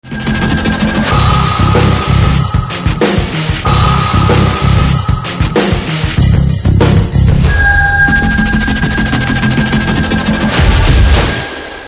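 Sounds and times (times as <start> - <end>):
Telugu theme ringtone music: 0.0 - 11.0.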